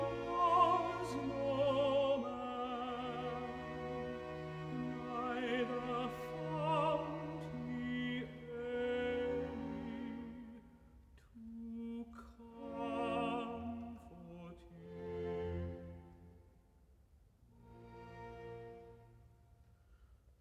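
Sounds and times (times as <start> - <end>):
tenor singing accompanied recitative: 0.0 - 16.1.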